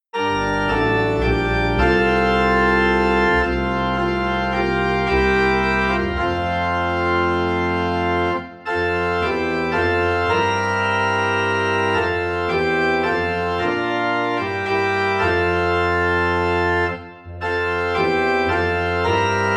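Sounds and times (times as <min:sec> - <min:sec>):
organ playing in F: 0:00.1 - 0:19.5.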